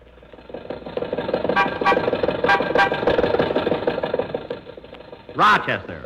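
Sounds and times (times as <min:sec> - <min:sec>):
old Maxwell car engine knocking and sputtering: 0:00.0 - 0:06.0
horn-like blare: 0:01.5 - 0:03.4.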